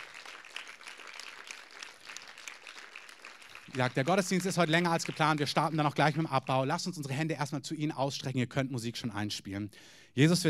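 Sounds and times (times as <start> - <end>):
audience applause: 0.0 - 6.2
speech: 3.7 - 10.4.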